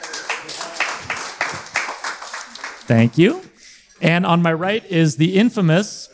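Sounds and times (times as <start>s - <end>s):
audience applause: 0.0s - 3.4s
speech: 2.9s - 6.1s.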